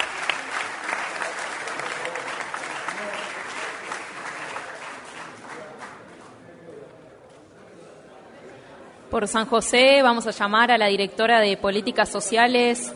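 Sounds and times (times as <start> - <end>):
crowd clapping: 0.0 - 6.4
speech: 9.1 - 12.9.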